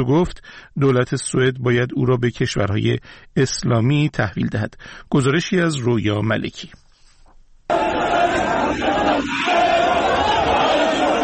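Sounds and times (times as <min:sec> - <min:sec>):
speech: 0:00.0 - 0:06.8
Iraqi Muslim protesters shouting while storming the Danish embassy in Baghdad: 0:07.7 - 0:11.2.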